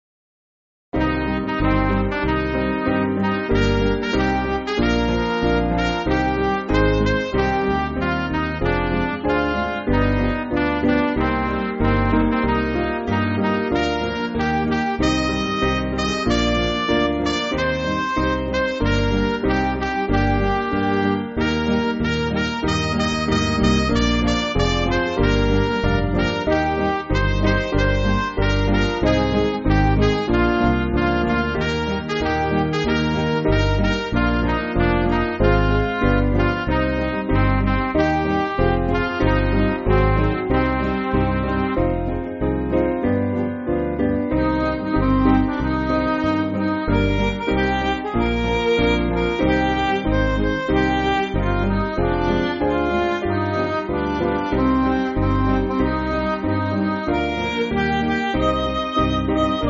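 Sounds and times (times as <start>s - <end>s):
MIDI backing music: 1.0s - 59.6s.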